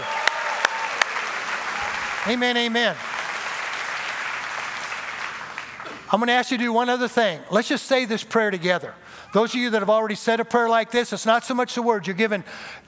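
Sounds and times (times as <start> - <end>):
audience applause: 0.0 - 6.1
speech: 2.2 - 3.1, 6.1 - 12.8.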